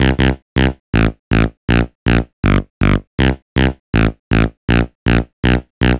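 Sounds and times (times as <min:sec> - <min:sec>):
bass loops: 0:00.0 - 0:05.9.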